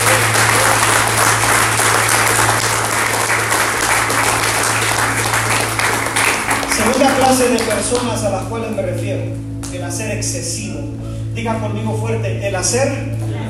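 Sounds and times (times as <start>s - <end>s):
audience applauding: 0.0s - 8.2s
speech: 7.0s - 13.2s.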